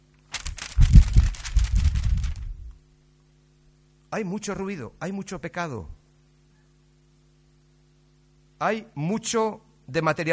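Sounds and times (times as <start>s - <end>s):
sheet of paper being crumpled: 0.3s - 2.7s
speech: 4.1s - 6.0s, 8.6s - 10.3s.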